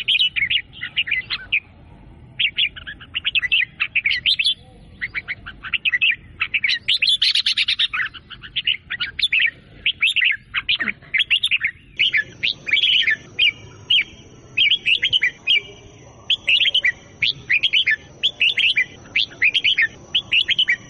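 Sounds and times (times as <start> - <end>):
sooty-headed bulbul singing bubbly chirping phrases: 0.0 - 20.8.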